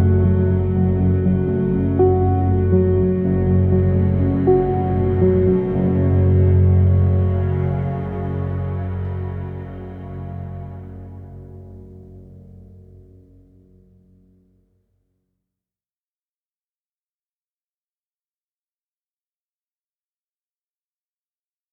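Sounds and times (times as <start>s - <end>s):
instrumental music: 0.0s - 14.1s.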